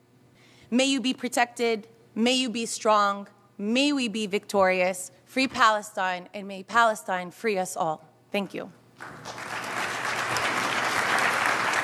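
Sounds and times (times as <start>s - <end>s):
speech: 0.7s - 9.4s
applause: 9.0s - 11.8s.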